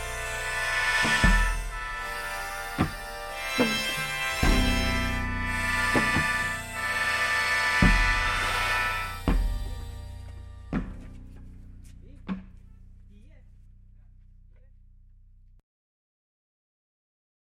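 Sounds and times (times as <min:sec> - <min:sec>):
harmonica music: 0:00.0 - 0:13.5.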